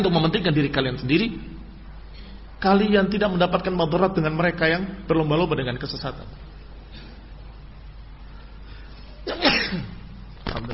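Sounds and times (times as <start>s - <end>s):
speech: 0.0s - 1.5s, 2.6s - 7.0s, 9.2s - 10.0s
person sneezing: 9.2s - 10.0s.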